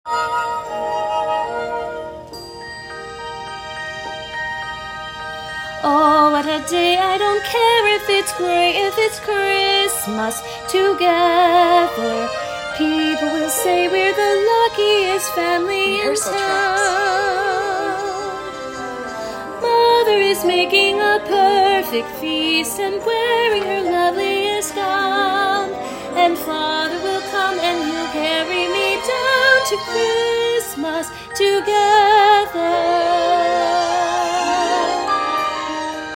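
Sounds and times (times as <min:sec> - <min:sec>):
christmas song: 0:00.1 - 0:36.1
people singing: 0:10.1 - 0:18.6, 0:19.6 - 0:35.9.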